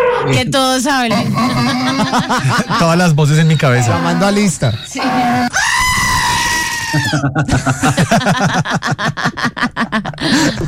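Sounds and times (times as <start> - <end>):
speech: 0.2 - 5.6, 6.9 - 10.6
laughter: 1.1 - 4.7, 6.8 - 10.6
goat screaming and bleating: 1.1 - 7.2.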